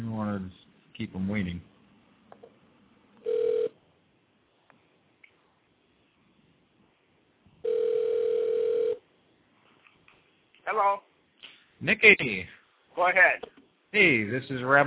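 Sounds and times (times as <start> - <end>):
speech: 0.4 - 1.7, 11.8 - 14.8
ringback tone of an outgoing phone call: 3.2 - 3.8, 7.6 - 9.0.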